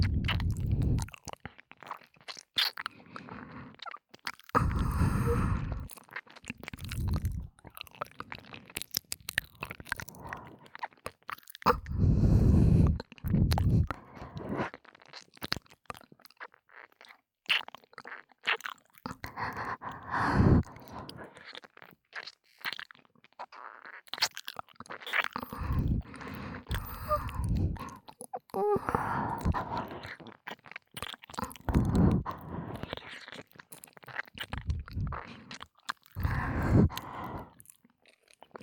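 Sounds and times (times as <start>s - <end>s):
ASMR ear licking sounds: 0.0s - 38.6s
ASMR breathy sighs: 0.1s - 1.1s, 2.8s - 3.8s, 4.6s - 5.9s, 10.0s - 10.8s, 11.7s - 14.7s, 19.1s - 21.5s, 25.4s - 30.2s, 31.4s - 33.2s, 34.6s - 35.6s, 36.2s - 37.7s.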